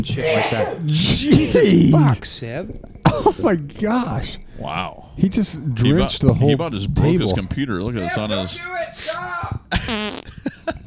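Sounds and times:
excited voices and exclamations: 0:00.0 - 0:10.8
laughter: 0:00.0 - 0:10.8
speech: 0:00.0 - 0:10.8
loud sneeze: 0:00.1 - 0:04.8, 0:08.7 - 0:10.8.

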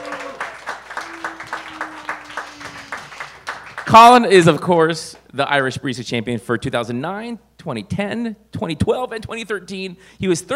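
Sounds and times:
audience applause: 0:00.0 - 0:04.2
speech: 0:03.9 - 0:10.5.

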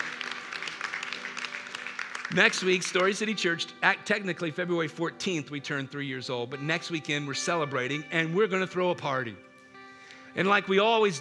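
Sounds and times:
crowd cheering: 0:00.0 - 0:03.1
crowd clapping: 0:00.0 - 0:03.6
speech: 0:02.3 - 0:09.5, 0:10.3 - 0:11.1.

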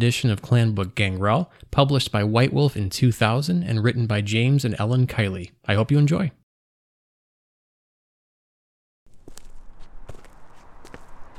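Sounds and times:
speech: 0:00.0 - 0:06.4
shit-kicker boots footsteps on city sidewalk: 0:09.1 - 0:11.3.

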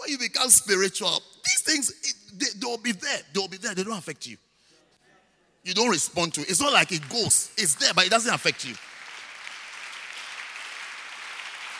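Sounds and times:
speech: 0:00.1 - 0:04.5, 0:05.6 - 0:09.0
audience clapping: 0:06.0 - 0:11.7.

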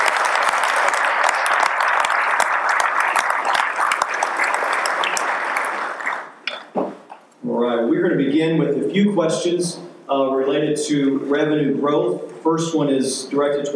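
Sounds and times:
audience applause: 0:00.0 - 0:06.4
speech: 0:08.0 - 0:13.7.

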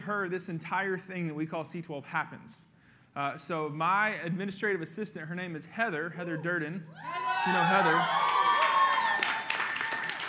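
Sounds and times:
speech: 0:00.1 - 0:08.4
crowd clapping: 0:07.0 - 0:10.2.

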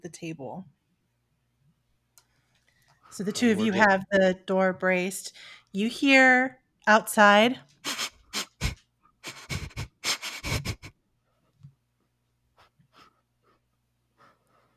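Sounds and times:
speech: 0:00.1 - 0:00.8, 0:03.1 - 0:08.0
animal sniffing around a door: 0:07.8 - 0:10.9.

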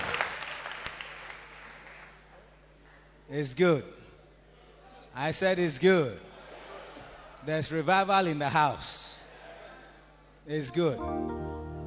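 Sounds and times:
audience clapping: 0:00.0 - 0:02.4
speech: 0:03.3 - 0:04.0, 0:05.2 - 0:06.3, 0:07.4 - 0:09.1, 0:10.4 - 0:11.3.

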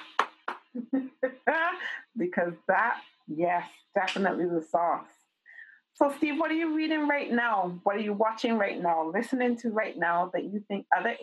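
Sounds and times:
person clapping hands: 0:00.0 - 0:00.8, 0:04.1 - 0:04.4
speech: 0:00.9 - 0:05.2, 0:06.0 - 0:11.2.

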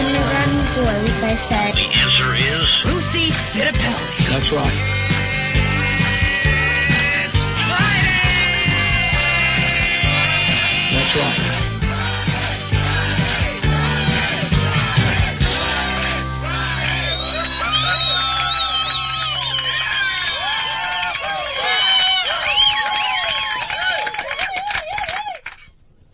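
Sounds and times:
crowd cheering: 0:00.0 - 0:25.7
speech: 0:01.2 - 0:05.7, 0:11.1 - 0:11.6
applause: 0:18.2 - 0:25.7.

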